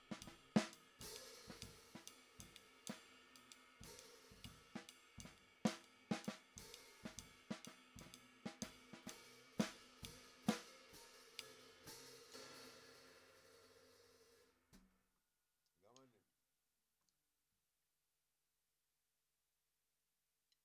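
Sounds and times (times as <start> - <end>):
snare drum: 0.0 - 14.3.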